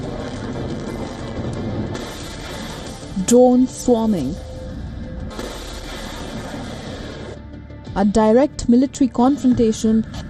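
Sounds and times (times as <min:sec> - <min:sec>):
missiles flying: 0:00.0 - 0:03.2, 0:05.3 - 0:07.4
speech: 0:03.3 - 0:04.4, 0:08.0 - 0:10.2.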